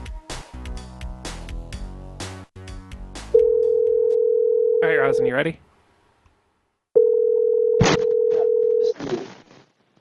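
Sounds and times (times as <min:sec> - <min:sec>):
telephone dial tone: 0:03.4 - 0:04.8, 0:07.0 - 0:08.9
speech: 0:04.8 - 0:05.7.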